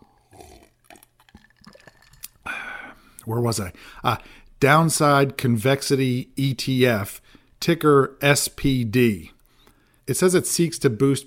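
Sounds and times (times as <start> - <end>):
person drinking a sip of water: 0.0 - 3.3
speech: 3.2 - 9.4, 10.1 - 11.2.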